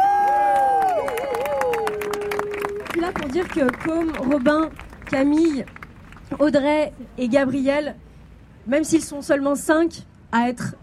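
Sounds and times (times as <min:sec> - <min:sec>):
long sustained whoop sliding downward in pitch: 0:00.0 - 0:02.8
crowd clapping and cheering: 0:00.0 - 0:06.4
speech: 0:03.1 - 0:08.0, 0:08.7 - 0:10.8.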